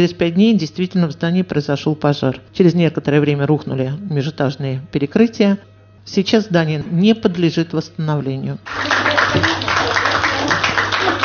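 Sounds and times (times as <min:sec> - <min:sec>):
speech: 0:00.0 - 0:09.6
low steady hum: 0:00.0 - 0:11.2
audience applause after a talk: 0:08.7 - 0:11.2.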